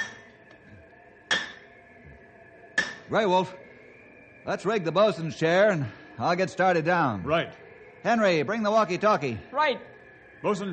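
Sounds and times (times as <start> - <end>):
hammer striking a metal spike driven into hard ice: 0.0 - 0.2, 1.3 - 1.6, 2.8 - 3.1
speech: 3.1 - 3.6, 4.4 - 10.7.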